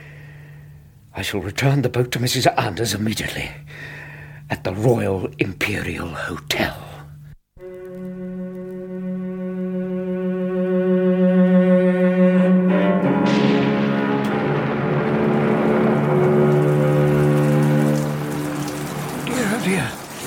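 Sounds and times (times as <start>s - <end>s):
speech: 1.2s - 4.0s, 4.6s - 6.9s
low tonal drone: 7.6s - 19.4s
heavy rain: 14.0s - 20.2s.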